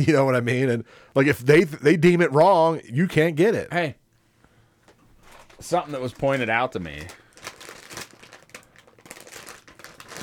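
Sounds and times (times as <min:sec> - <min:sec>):
speech: 0:00.0 - 0:04.0, 0:05.6 - 0:07.2
plastic snack bags crinkling: 0:05.2 - 0:10.2.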